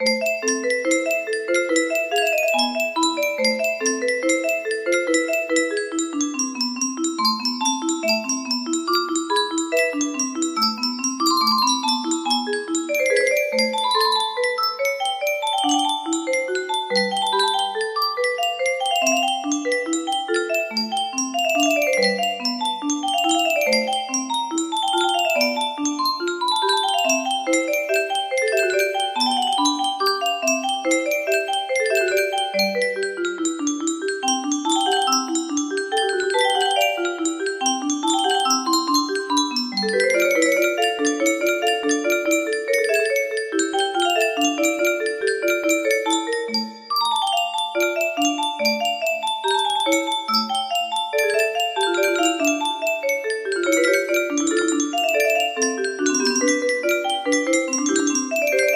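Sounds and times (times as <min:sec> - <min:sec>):
music box playing a prelude in B minor: 0:00.0 - 0:58.7.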